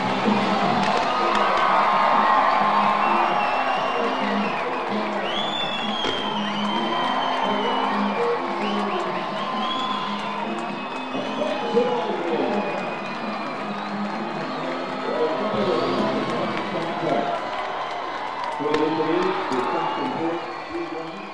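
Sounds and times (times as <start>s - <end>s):
large stadium crowd cheering after a walk-off baseball win: 0.0s - 21.3s
scattered clapping: 0.0s - 21.3s.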